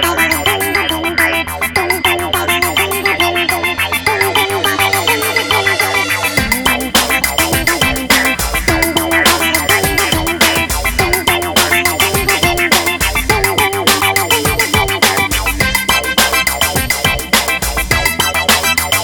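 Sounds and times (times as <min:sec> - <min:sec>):
ice level theme music: 0:00.2 - 0:19.0.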